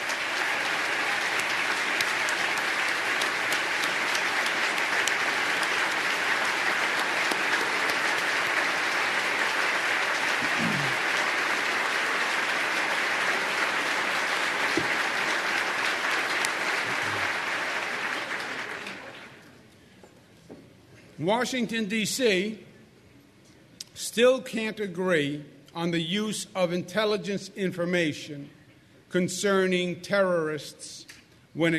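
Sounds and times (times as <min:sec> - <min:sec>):
audience applause: 0:00.0 - 0:19.5
speech: 0:21.2 - 0:22.6, 0:24.2 - 0:31.7.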